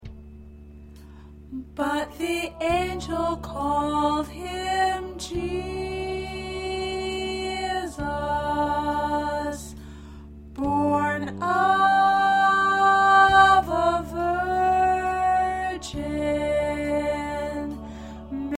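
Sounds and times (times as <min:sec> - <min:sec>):
soprano singing choir parts: 0:01.5 - 0:09.8, 0:10.6 - 0:18.5.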